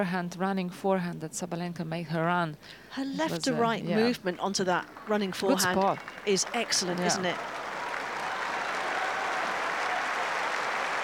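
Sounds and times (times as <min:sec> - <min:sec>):
speech: 0:00.0 - 0:07.6
tennis crowd applauding: 0:04.7 - 0:11.0.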